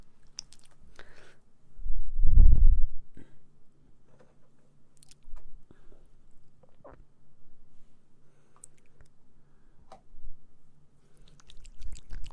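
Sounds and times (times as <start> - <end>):
low steady hum: 0.0 - 12.3
soft clicks, taps and wet smacks of mouth sounds: 0.2 - 0.8, 5.0 - 5.4, 8.6 - 9.2, 11.2 - 12.3.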